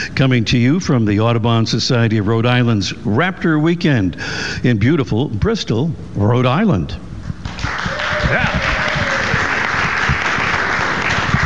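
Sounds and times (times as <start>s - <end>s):
speech: 0.2s - 8.8s
studio audience applauding at the Audubon Society of Rhode Island's Raptor Weekend: 7.4s - 11.4s.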